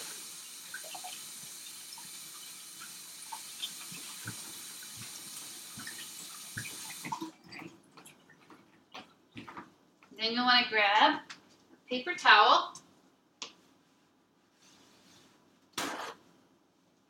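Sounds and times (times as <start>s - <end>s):
tap water running: 0.0s - 9.1s
speech: 10.2s - 12.8s.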